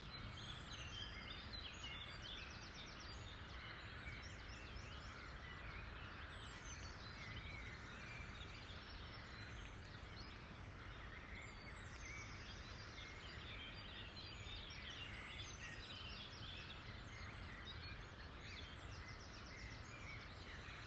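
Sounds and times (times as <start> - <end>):
morning birds singing: 0.0 - 20.8.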